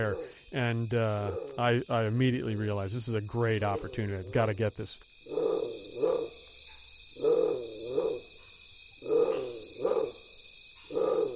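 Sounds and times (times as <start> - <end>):
deep growling bird calls resembling a large cat: 0.0 - 2.4, 3.5 - 4.6, 5.2 - 6.5, 7.1 - 8.4, 9.0 - 11.3
speech: 0.0 - 5.4
high-pitched insect drone: 0.0 - 11.3.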